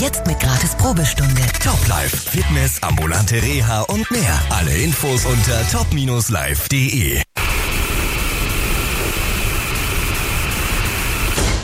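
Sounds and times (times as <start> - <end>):
speech: 0.0 - 7.3
rushing static noise: 7.2 - 11.4.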